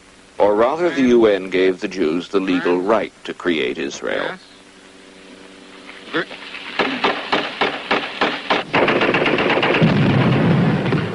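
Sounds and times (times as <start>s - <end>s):
speech: 0.6s - 4.5s, 6.1s - 6.4s
rapid gunshots of war: 6.8s - 11.1s
heavy machine gun fire and rumbling battle noise of war: 6.9s - 11.1s.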